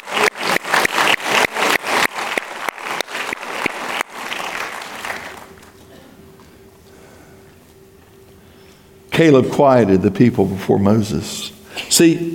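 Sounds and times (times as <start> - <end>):
audience clapping: 0.0 - 5.9
speech: 9.2 - 12.3.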